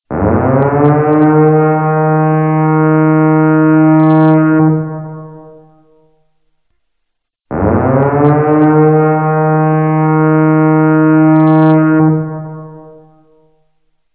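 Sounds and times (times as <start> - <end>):
siren: 0.1 - 6.1, 7.5 - 13.6.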